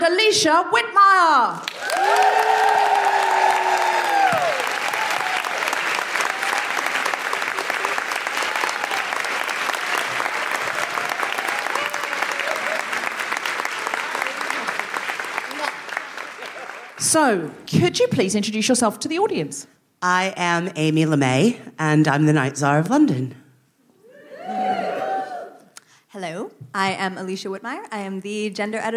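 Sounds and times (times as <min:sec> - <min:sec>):
speech: 0:00.0 - 0:02.2, 0:17.1 - 0:23.4, 0:26.2 - 0:28.9
live show audience applause: 0:01.6 - 0:17.0
live show audience cheering and whooping: 0:01.7 - 0:17.0, 0:24.0 - 0:25.7.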